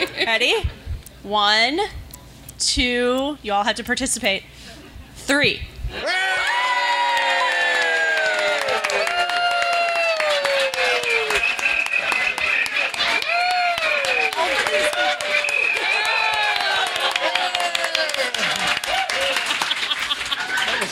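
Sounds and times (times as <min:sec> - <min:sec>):
speech: 0:00.2 - 0:02.0, 0:02.6 - 0:06.6
audience cheering and shouting: 0:06.0 - 0:19.7
audience clapping: 0:06.4 - 0:20.9
crowd laughing: 0:10.0 - 0:20.9.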